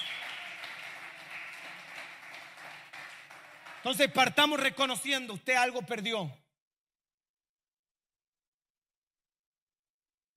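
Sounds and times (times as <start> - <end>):
audience applauding: 0.0 - 5.2
speech: 3.8 - 6.4.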